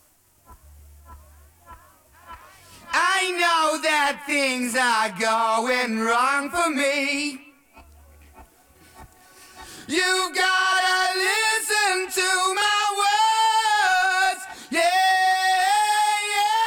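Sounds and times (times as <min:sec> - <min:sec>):
person singing: 0:02.8 - 0:07.9, 0:09.6 - 0:16.6.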